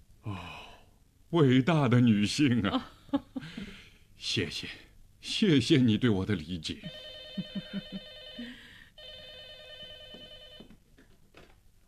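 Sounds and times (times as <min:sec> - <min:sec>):
speech: 0:01.3 - 0:07.1
telephone ringing with a call from Hong Kong: 0:06.8 - 0:10.8.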